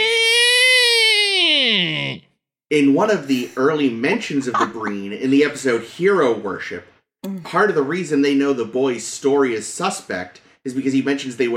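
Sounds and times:
voice imitating a nerd screech: 0.0 - 2.3
speech: 2.7 - 11.5
laughter: 3.4 - 5.6.

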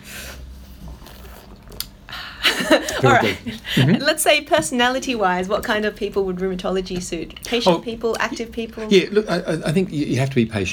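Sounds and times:
slurping coffee: 0.1 - 2.0
laughter: 2.4 - 4.0
speech: 2.7 - 10.7.

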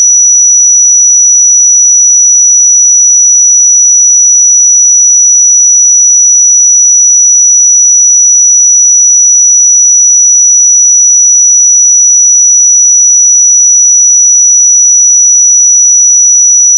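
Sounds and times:
pure 5884 Hz sine tone: 0.0 - 16.7.

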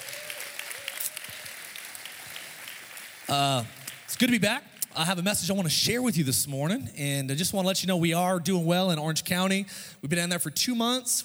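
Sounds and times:
audience applauding: 0.0 - 5.3
speech: 3.3 - 11.2.

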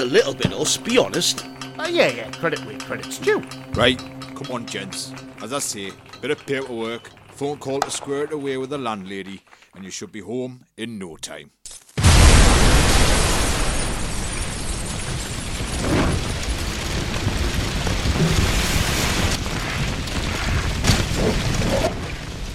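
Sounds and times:
speech: 0.0 - 11.8
building exploding: 12.0 - 21.6
building fire roaring and crackling: 12.0 - 22.5.

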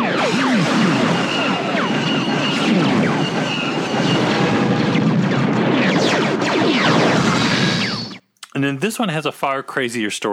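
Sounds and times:
walker cannon laser blasts: 0.0 - 8.2
speech: 9.0 - 10.3.

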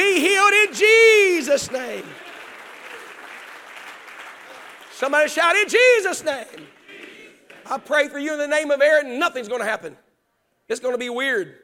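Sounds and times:
audience clapping hands: 0.0 - 8.4
speech: 0.7 - 2.3, 5.0 - 6.8, 7.7 - 10.0, 10.7 - 11.6.

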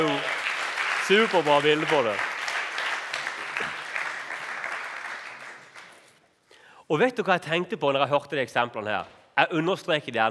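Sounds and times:
audience applause: 0.0 - 6.1
speech: 1.1 - 2.3, 6.9 - 10.3.

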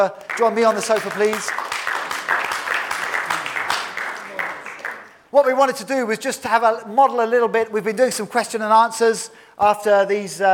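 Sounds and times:
speech: 0.0 - 1.7, 5.3 - 10.5
small round of applause: 0.0 - 5.3.

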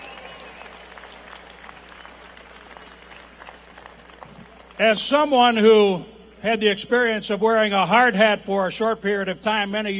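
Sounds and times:
applause from a large crowd: 0.0 - 4.8
speech: 4.8 - 9.9.

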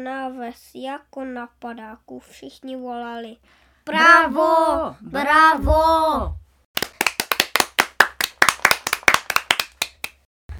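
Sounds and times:
speech: 0.0 - 6.4
crowd clapping hands wildly: 6.8 - 10.3.

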